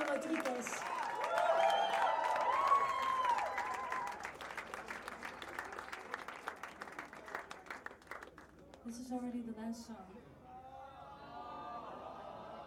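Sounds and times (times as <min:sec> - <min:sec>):
audience applause for backing vocalists: 0:00.0 - 0:08.6
speech: 0:08.9 - 0:10.3.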